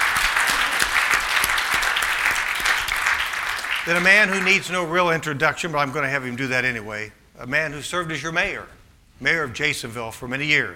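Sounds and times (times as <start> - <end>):
audience applause: 0.0 - 4.8
speech: 3.9 - 10.7.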